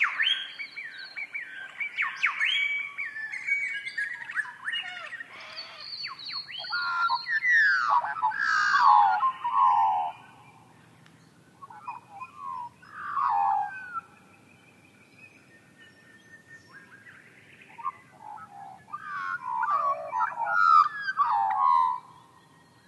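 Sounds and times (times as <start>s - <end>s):
birdsong: 0.0s - 22.8s.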